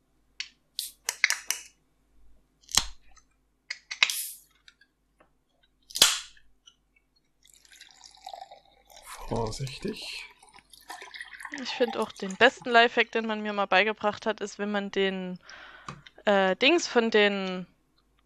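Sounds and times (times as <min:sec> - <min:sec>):
drink can opening: 0:03.7 - 0:04.5
drink fizzing hiss: 0:09.1 - 0:12.9
speech: 0:09.3 - 0:10.3, 0:11.6 - 0:17.7.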